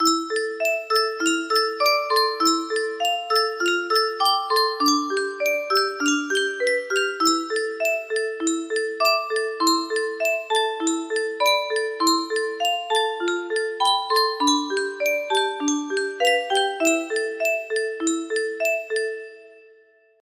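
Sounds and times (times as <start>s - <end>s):
music box: 0.0s - 20.2s.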